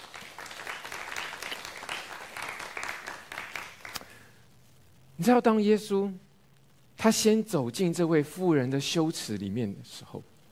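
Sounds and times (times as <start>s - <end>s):
church congregation clapping: 0.0s - 4.3s
speech: 5.2s - 6.2s, 7.0s - 10.3s.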